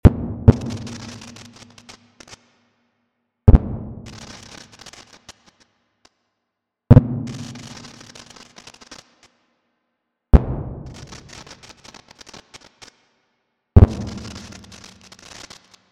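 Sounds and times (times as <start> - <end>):
fireworks: 0.0 - 2.6, 3.5 - 5.8, 6.9 - 9.4, 10.4 - 13.0, 13.8 - 15.9.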